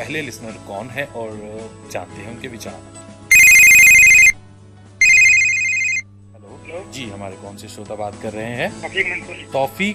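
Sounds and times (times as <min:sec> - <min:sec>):
speech: 0:00.0 - 0:03.1, 0:06.8 - 0:09.9
telephone ringing for an incoming listener's call: 0:03.3 - 0:04.4, 0:05.0 - 0:06.1.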